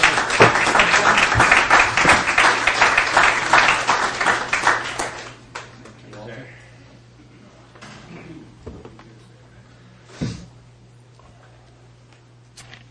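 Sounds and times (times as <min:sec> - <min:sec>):
audience applause welcoming a speaker at a recovery meeting: 0:00.0 - 0:05.8.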